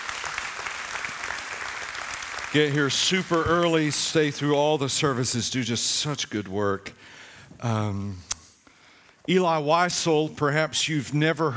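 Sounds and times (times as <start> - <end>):
audience applause: 0.0 - 3.9
speech: 2.5 - 8.3, 9.3 - 11.5.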